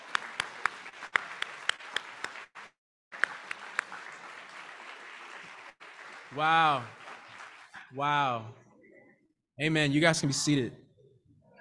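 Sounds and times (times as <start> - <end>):
audience applause: 0.0 - 8.5
speech: 6.3 - 7.0, 7.9 - 8.6, 9.6 - 10.8.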